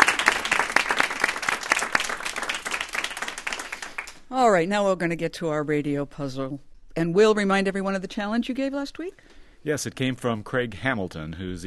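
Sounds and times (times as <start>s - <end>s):
audience applauding puzzle contestants: 0.0s - 4.2s
speech: 4.3s - 11.6s.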